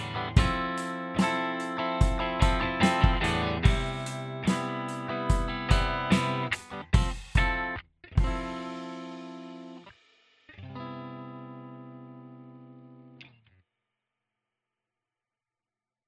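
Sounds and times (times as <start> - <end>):
drum: 0.0 - 10.5.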